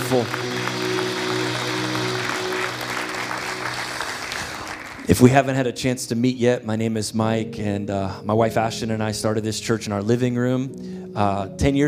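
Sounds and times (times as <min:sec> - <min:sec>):
audience clapping hands: 0:00.0 - 0:05.4
speech: 0:00.1 - 0:00.5, 0:05.1 - 0:11.8.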